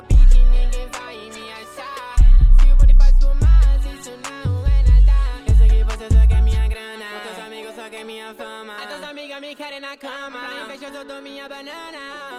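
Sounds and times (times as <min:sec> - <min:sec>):
deep bass: 0:00.0 - 0:01.0, 0:02.2 - 0:06.8.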